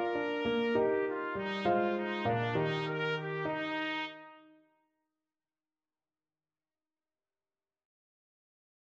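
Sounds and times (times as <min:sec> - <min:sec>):
trumpet playing a gigue in G major: 0:00.0 - 0:04.5.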